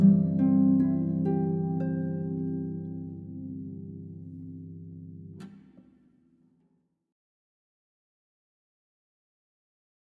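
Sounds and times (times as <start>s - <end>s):
solo harp: 0.0s - 5.8s.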